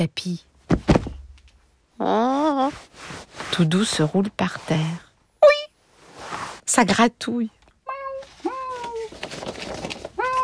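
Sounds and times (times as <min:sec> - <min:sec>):
speech: 0:00.0 - 0:00.5, 0:02.0 - 0:05.0, 0:06.7 - 0:07.6
cat meowing: 0:07.8 - 0:09.1, 0:10.2 - 0:10.4.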